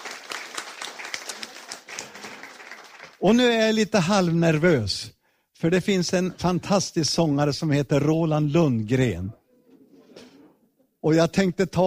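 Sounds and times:
audience applause: 0.0s - 3.3s
speech: 3.2s - 9.4s, 11.0s - 11.8s.

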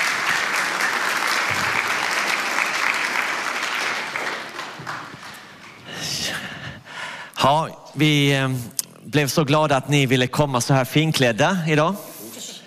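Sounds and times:
audience applause: 0.0s - 6.0s
speech: 7.4s - 12.1s.

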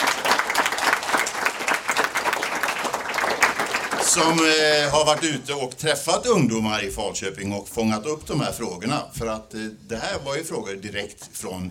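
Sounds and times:
audience applause: 0.0s - 5.5s
speech: 4.2s - 11.6s.

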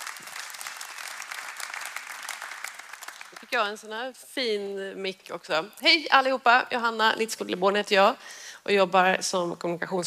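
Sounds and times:
audience applause: 0.0s - 3.6s
speech: 3.5s - 10.0s.

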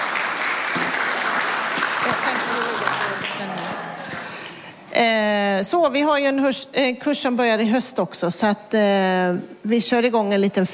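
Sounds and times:
crowd applause: 0.0s - 4.8s
speech: 5.0s - 10.7s.

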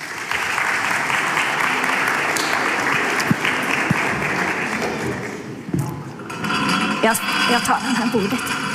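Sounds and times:
audience applause: 0.0s - 5.7s
speech: 7.0s - 8.6s.

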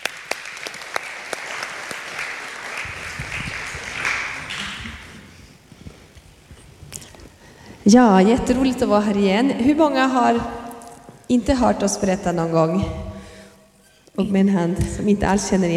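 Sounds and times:
audience applause: 0.0s - 5.3s
speech: 7.9s - 10.6s, 11.3s - 13.1s, 14.2s - 15.7s.

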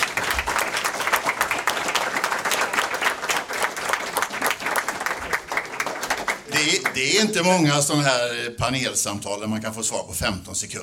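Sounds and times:
audience applauding: 0.0s - 7.8s
speech: 7.0s - 10.8s.

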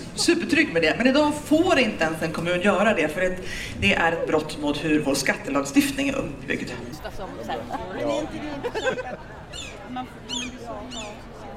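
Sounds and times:
speech: 0.2s - 11.3s
laughter: 7.0s - 9.6s
gulls calling: 8.0s - 11.3s.

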